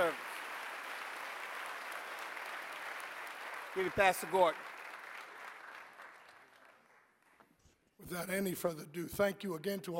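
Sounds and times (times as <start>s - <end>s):
audience applauding: 0.0s - 7.8s
speech: 3.8s - 4.7s, 8.0s - 9.9s.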